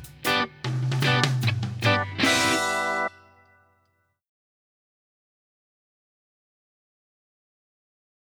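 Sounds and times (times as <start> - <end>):
backing track without bass: 0.0 - 3.6.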